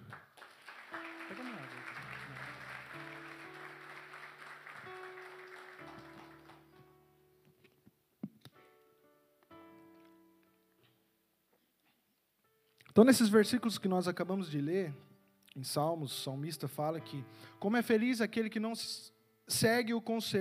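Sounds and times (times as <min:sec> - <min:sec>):
audience applause: 0:00.0 - 0:06.8
sustained keyboard or organ chords: 0:00.7 - 0:07.4
speech: 0:13.0 - 0:20.4.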